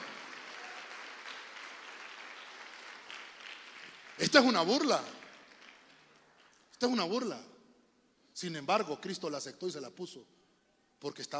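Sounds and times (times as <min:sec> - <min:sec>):
audience clapping hands: 0:00.0 - 0:06.8
speech: 0:04.2 - 0:05.2, 0:06.8 - 0:07.5, 0:08.4 - 0:10.4, 0:11.0 - 0:11.3.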